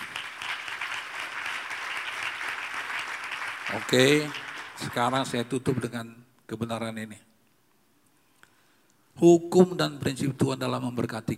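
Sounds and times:
audience applause: 0.0 - 5.8
speech: 3.7 - 7.3, 9.2 - 11.3.

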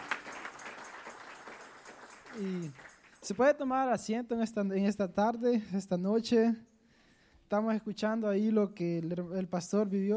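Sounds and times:
audience applause: 0.0 - 3.2
speech: 2.4 - 6.7, 7.5 - 10.1.

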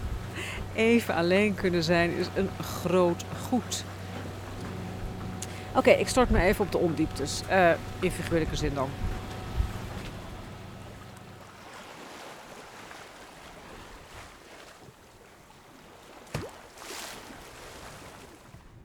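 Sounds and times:
low tonal hum: 0.0 - 15.8
speech: 0.8 - 3.9, 5.8 - 9.2
blustery wind rushing over a sailing boat: 5.1 - 18.8.

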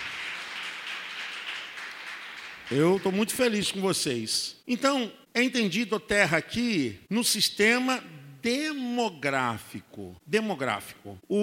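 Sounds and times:
audience applause: 0.0 - 3.3
speech: 2.7 - 11.4.

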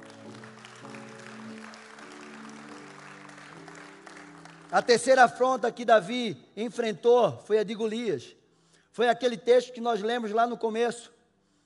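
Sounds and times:
audience clapping: 0.0 - 5.4
speech: 4.7 - 8.4, 9.0 - 11.2.

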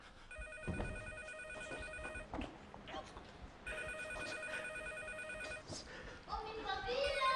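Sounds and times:
telephone ringing: 0.3 - 2.3, 3.7 - 5.7, 7.0 - 7.3.

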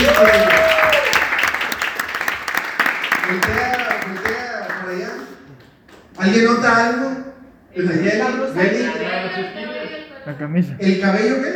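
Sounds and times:
audience applause: 0.0 - 5.4
speech: 0.1 - 0.4, 6.2 - 7.1, 7.8 - 11.5.

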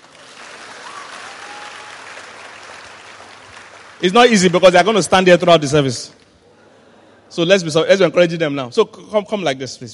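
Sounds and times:
audience clapping: 0.0 - 5.4
speech: 4.0 - 6.2, 7.3 - 9.9.

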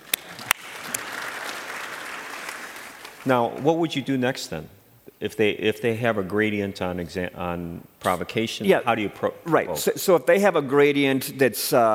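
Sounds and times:
light audience applause during a cardiomyopathy lecture: 0.0 - 3.3
speech: 3.2 - 11.9.

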